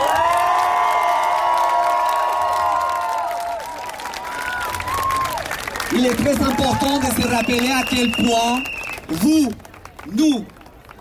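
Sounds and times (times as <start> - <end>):
high whoops and shouted voices: 0.0 - 5.5, 6.3 - 8.9
crowd applauding: 0.0 - 10.9
speech: 6.0 - 10.6.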